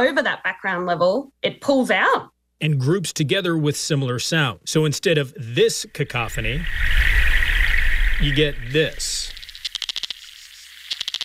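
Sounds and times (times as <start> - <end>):
speech: 0.0 - 7.3, 8.2 - 9.3
river bugs underwater: 6.1 - 11.2.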